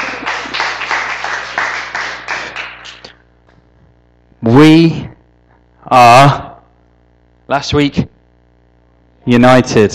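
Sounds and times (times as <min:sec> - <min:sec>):
round of applause: 0:00.0 - 0:03.2
speech: 0:04.4 - 0:05.1, 0:05.9 - 0:06.5, 0:07.5 - 0:08.1, 0:09.2 - 0:09.9.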